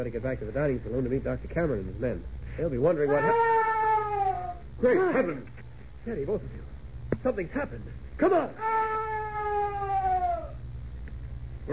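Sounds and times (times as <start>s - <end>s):
speech: 0.0s - 3.7s, 4.8s - 9.0s
strange terrifying eerie wailing scream: 3.1s - 4.6s, 8.6s - 10.6s.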